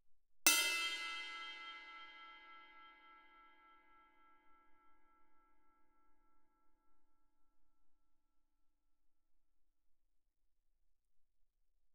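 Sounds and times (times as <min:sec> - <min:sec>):
suspended cymbal crash struck with a stick on the bell: 0:00.5 - 0:04.3.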